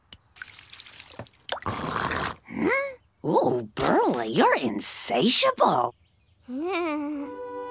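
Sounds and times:
liquid dripping: 0:00.3 - 0:02.0
liquid pouring onto a surface: 0:00.4 - 0:02.3
speech: 0:03.2 - 0:07.4.

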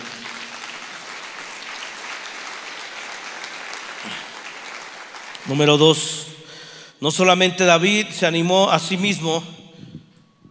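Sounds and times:
audience applause: 0:00.0 - 0:05.8
speech: 0:05.5 - 0:06.2, 0:07.0 - 0:09.6.

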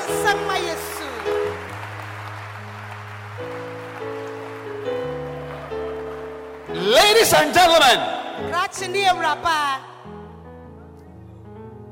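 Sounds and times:
audience clapping: 0:00.0 - 0:08.0
speech: 0:06.8 - 0:09.9.

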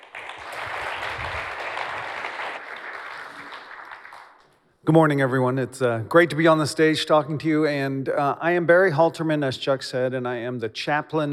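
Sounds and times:
warm round of applause: 0:00.0 - 0:04.5
speech: 0:04.9 - 0:11.3.

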